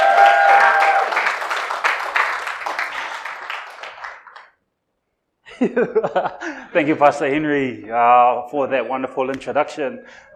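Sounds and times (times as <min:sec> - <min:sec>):
church congregation applauding to welcome a speaker to the pulpit: 0:00.0 - 0:04.6
laughter: 0:05.5 - 0:07.2
speech: 0:05.6 - 0:10.3.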